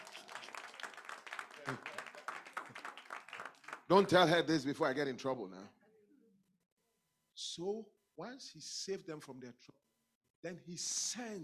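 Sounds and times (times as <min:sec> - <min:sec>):
crowd of people clapping: 0:00.0 - 0:04.4
speech: 0:01.7 - 0:01.9, 0:03.9 - 0:05.8, 0:07.6 - 0:09.8, 0:10.4 - 0:11.4.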